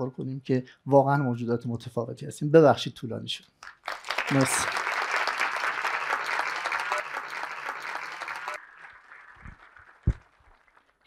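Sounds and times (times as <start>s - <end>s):
speech: 0.0s - 4.8s
audience applause: 3.7s - 11.0s.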